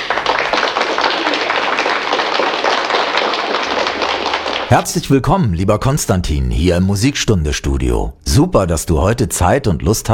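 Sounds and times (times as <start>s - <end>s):
group applauding: 0.0s - 5.2s
speech: 4.7s - 10.1s.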